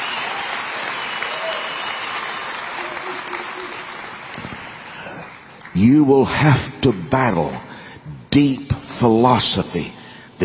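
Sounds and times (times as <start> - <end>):
audience applause: 0.0 - 5.8
speech: 5.8 - 7.7, 8.4 - 10.4.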